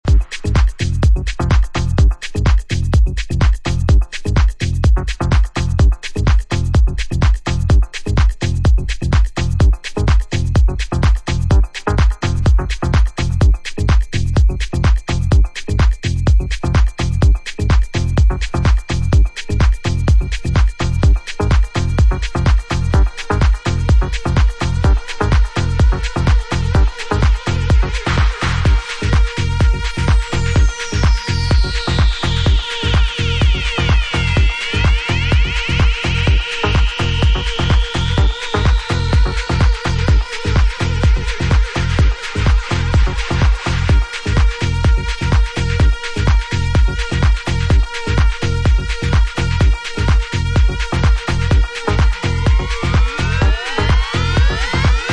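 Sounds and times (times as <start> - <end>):
instrumental mix: 0.0 - 55.1.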